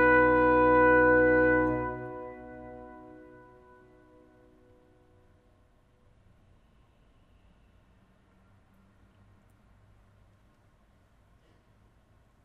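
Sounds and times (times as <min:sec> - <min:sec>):
trumpet piece: 0:00.0 - 0:05.0.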